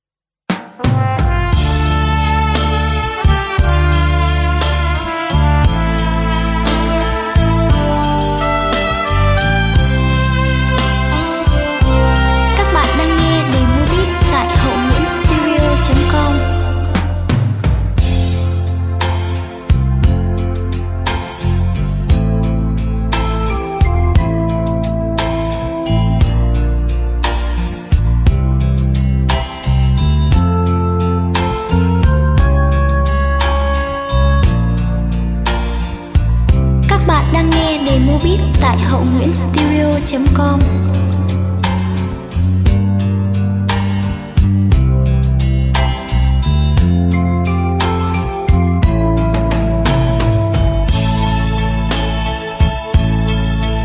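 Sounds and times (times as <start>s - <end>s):
music beat playback: 0.6s - 53.8s.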